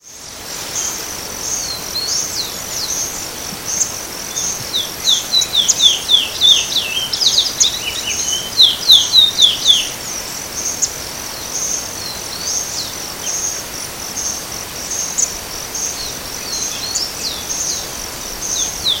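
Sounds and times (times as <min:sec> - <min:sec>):
Chestnut-bellied seed finch Sporophila angolensis twittering in Itatiaia National Park, Brazil: 0:00.8 - 0:10.0.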